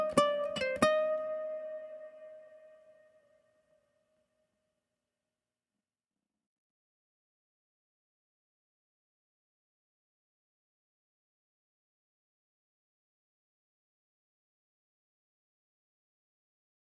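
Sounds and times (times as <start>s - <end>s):
ukulele: 0.0s - 3.1s.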